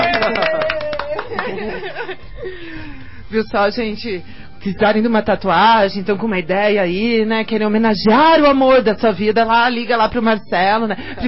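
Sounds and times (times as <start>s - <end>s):
hands clapping for a tattoo artist: 0.0s - 1.9s
laughter: 0.0s - 2.9s
speech: 2.1s - 11.2s.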